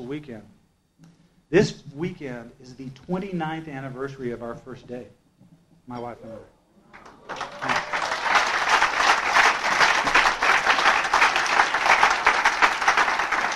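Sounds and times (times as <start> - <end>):
speech: 0.0 - 5.2, 5.9 - 6.6, 7.3 - 7.7
audience applauding: 6.9 - 13.5.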